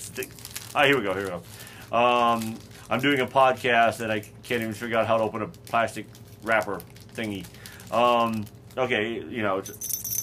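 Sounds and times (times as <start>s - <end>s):
speech: 0.2s - 9.9s
small bell jingling on pet collar: 9.6s - 10.2s.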